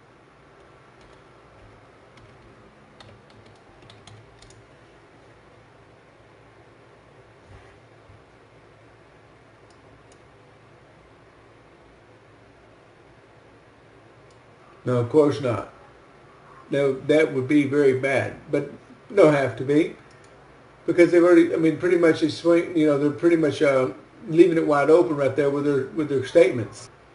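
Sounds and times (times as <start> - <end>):
computer keyboard typing a search: 0.6 - 4.7
speech: 14.8 - 15.7, 16.7 - 20.0, 20.9 - 27.1.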